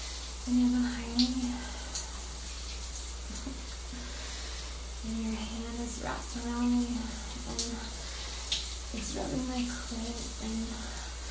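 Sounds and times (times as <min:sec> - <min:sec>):
running shower water: 0:00.0 - 0:11.3
speech: 0:00.5 - 0:00.8, 0:08.9 - 0:11.0.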